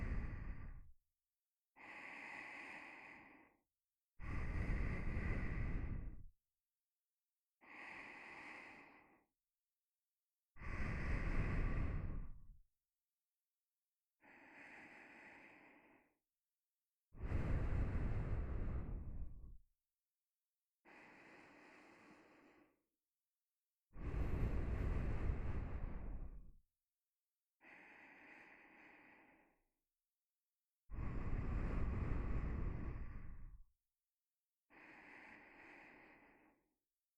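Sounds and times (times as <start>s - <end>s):
nose breathing while lying beside: 0.0s - 0.8s, 1.8s - 3.5s, 4.2s - 6.2s, 7.6s - 9.2s, 10.6s - 12.4s, 17.2s - 19.4s, 20.9s - 22.8s, 24.0s - 26.4s, 27.6s - 29.6s, 30.9s - 33.6s, 34.7s - 36.6s.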